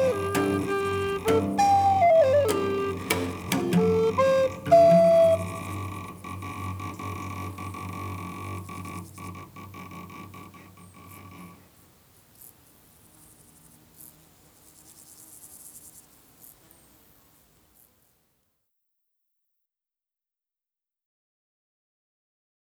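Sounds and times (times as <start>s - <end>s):
witch music: 0.0s - 7.6s.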